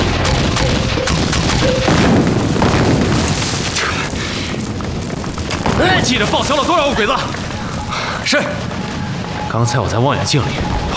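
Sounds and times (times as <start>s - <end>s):
aircraft and artillery bombardment explosions: 0.0s - 10.9s
booming artillery fire: 0.0s - 10.9s
speech: 6.1s - 7.4s, 8.3s - 8.6s, 9.5s - 10.9s.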